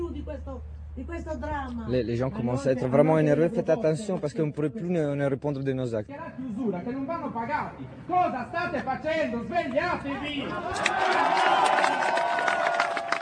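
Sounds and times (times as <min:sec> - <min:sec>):
speech: 0:00.4 - 0:12.3
protesting crowd shouting: 0:10.2 - 0:13.2.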